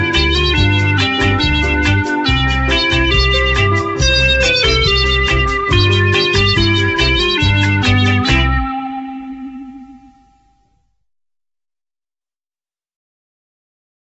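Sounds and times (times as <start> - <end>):
instrumental music: 0.0 - 10.7.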